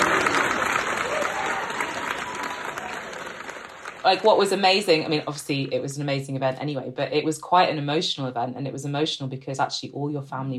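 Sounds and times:
audience applause: 0.0s - 5.4s
speech: 4.0s - 10.5s.

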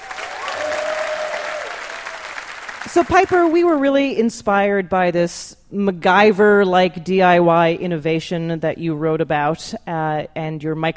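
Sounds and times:
audience applause for a guest at a live trivia game show: 0.0s - 3.6s
speech: 2.9s - 10.9s.

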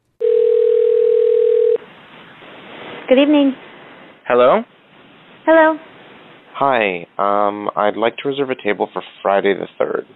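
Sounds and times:
telephone tone on a recorded call: 0.2s - 1.8s
speech: 3.1s - 3.6s, 4.3s - 4.7s, 5.5s - 5.9s, 6.6s - 10.1s.

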